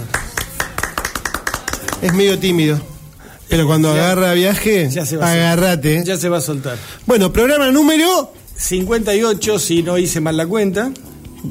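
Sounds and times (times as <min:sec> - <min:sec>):
sharp claps: 0:00.0 - 0:02.5
speech: 0:02.0 - 0:02.9, 0:03.5 - 0:11.5.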